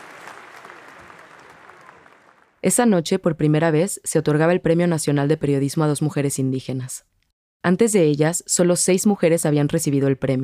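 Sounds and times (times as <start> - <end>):
large crowd applause: 0.0 - 2.6
speech: 2.6 - 10.4.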